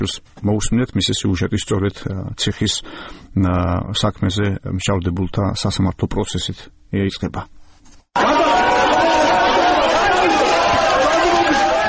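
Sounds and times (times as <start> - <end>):
speech: 0.0 - 7.6
courtroom crowd shouting and applauding after a judge's decision: 8.2 - 11.8.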